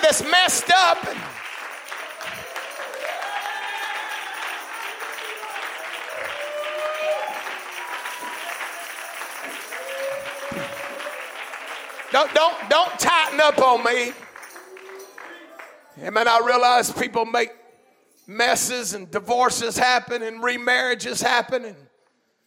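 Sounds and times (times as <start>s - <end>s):
audience applause: 0.0s - 15.9s
speech: 0.1s - 1.4s, 12.2s - 14.2s, 16.0s - 17.6s, 18.3s - 21.9s.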